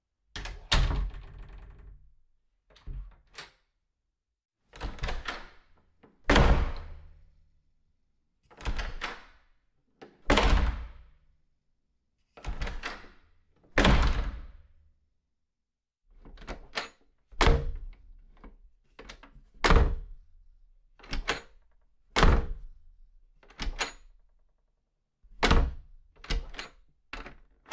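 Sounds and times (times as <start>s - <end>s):
wooden door: 0.3s - 3.7s, 4.8s - 7.3s, 8.6s - 9.5s, 12.4s - 14.7s, 16.2s - 20.2s, 21.0s - 22.8s, 23.4s - 24.4s, 25.3s - 27.7s.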